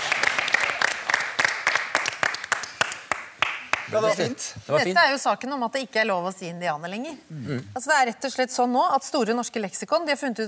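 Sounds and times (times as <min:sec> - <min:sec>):
audience clapping: 0:00.0 - 0:04.4
speech: 0:03.9 - 0:10.4.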